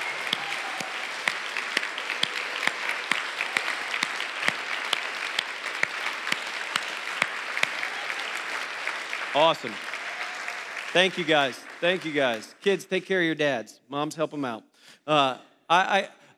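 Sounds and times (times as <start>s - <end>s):
audience cheering and applause: 0.0s - 12.8s
speech: 9.4s - 9.9s, 10.9s - 16.3s.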